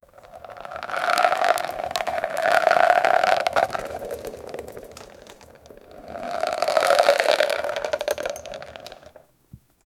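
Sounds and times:
tumbleweed rolling in a western: 0.2 - 9.1.

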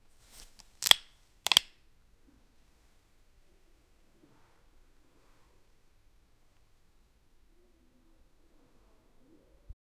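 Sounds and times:
soda beverage being opened: 0.5 - 1.7.

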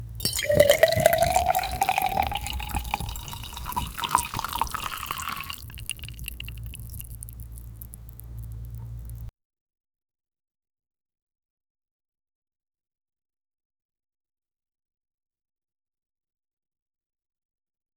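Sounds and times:
oil and liquids: 0.0 - 9.3.

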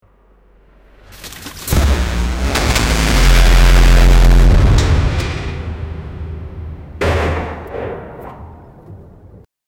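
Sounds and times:
car exploding: 1.2 - 7.0.

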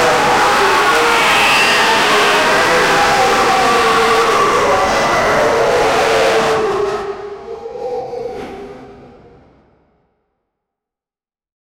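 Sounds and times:
demonic chaos sounds: 0.0 - 9.3.

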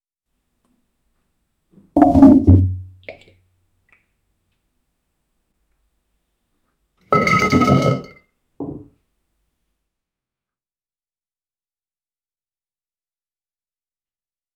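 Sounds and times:
man falling down a well: 2.0 - 3.0.

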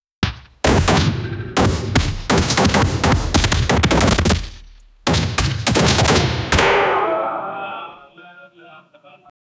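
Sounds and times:
medieval dungeon battle sounds: 0.6 - 8.2.

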